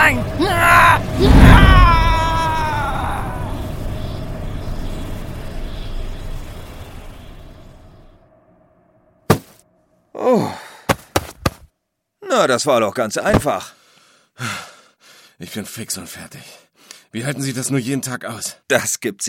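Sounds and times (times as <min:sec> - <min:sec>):
ghost's loud scream as it's sucked away: 0:00.0 - 0:03.8
speech: 0:12.4 - 0:13.8, 0:14.4 - 0:14.7, 0:15.4 - 0:19.2.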